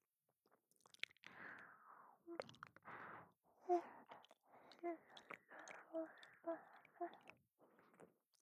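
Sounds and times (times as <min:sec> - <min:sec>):
shallow ear licking in right ear: 0:01.2 - 0:07.3.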